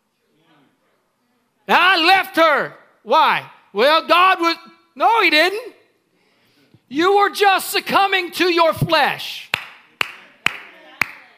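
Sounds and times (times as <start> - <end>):
speech: 1.7 - 5.8, 6.9 - 9.5
preacher clapping his hands: 9.5 - 11.2.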